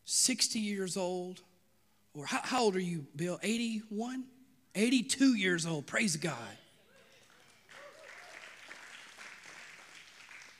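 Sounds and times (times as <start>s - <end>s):
speech: 0.2s - 1.5s, 2.1s - 6.6s
crowd cheering and applauding: 7.0s - 10.5s.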